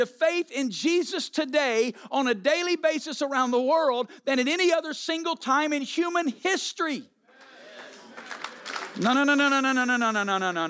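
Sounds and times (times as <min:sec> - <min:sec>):
man speaking loudly: 0:00.0 - 0:07.2, 0:09.0 - 0:10.6
speech: 0:00.0 - 0:07.2, 0:09.0 - 0:10.6
light polite golf clap from a small crowd: 0:07.4 - 0:09.7.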